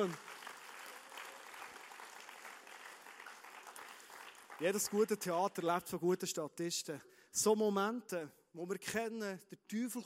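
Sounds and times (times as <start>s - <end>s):
speech: 0.0s - 0.2s, 4.6s - 10.0s
audience applause: 0.0s - 5.3s.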